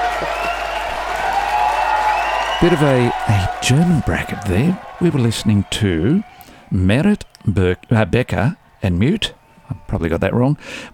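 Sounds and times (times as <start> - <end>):
big crowd applause: 0.0 - 7.2
speech: 2.6 - 10.9.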